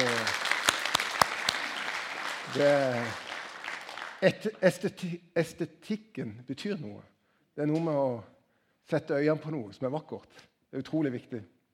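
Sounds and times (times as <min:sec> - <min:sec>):
audience applause: 0:00.0 - 0:04.4
speech: 0:02.6 - 0:03.2, 0:04.2 - 0:08.3, 0:08.9 - 0:11.6.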